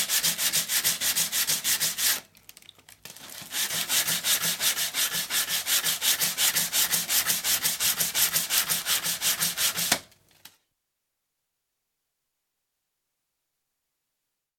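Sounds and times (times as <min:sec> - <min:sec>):
sanding with folded paper and a small piece of wood: 0:00.0 - 0:02.2, 0:03.4 - 0:10.0.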